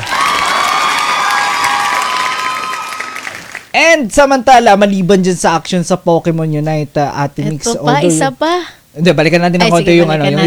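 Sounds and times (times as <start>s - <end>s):
audience applause and cheering for the Pokemon Unite team: 0.0s - 3.7s
speech: 3.8s - 10.4s.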